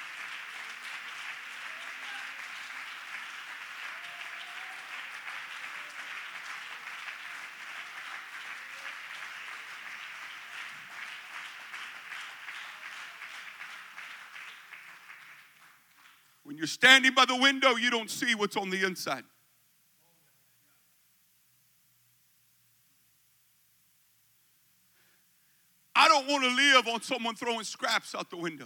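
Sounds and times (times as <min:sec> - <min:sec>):
audience clapping hands: 0:00.0 - 0:16.4
speech: 0:16.5 - 0:19.3, 0:27.0 - 0:28.6.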